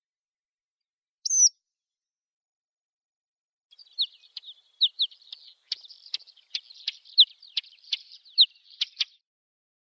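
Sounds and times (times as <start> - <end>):
pied wheatear Oenanthe pleschanka: 3.7 - 9.2.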